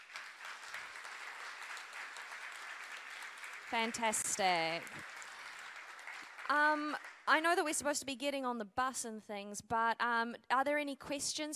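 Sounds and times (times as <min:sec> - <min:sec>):
audience applause: 0:00.0 - 0:07.3
speech: 0:03.7 - 0:05.2, 0:06.5 - 0:11.5.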